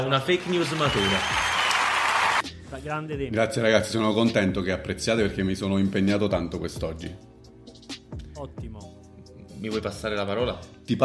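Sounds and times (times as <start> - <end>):
speech: 0.0 - 1.4, 2.7 - 7.3, 9.6 - 11.0
applause: 0.0 - 2.4.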